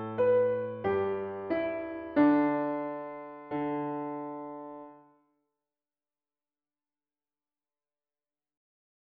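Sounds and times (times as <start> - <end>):
piano piece: 0.0 - 5.2.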